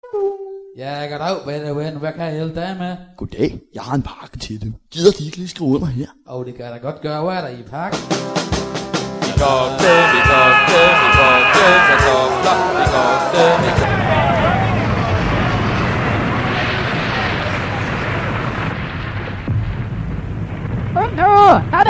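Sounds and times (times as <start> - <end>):
speech: 0.1 - 8.7, 9.4 - 14.3, 21.5 - 21.8
distorted amplifier noise from someone playing with amplifiers: 9.8 - 21.8.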